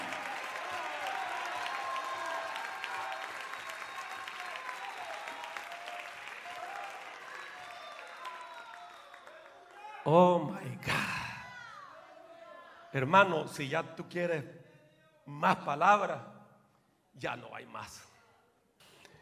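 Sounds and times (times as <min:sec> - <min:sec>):
audience applause: 0:00.0 - 0:10.0
speech: 0:10.1 - 0:11.2, 0:12.9 - 0:14.6, 0:15.3 - 0:16.3, 0:17.2 - 0:18.1.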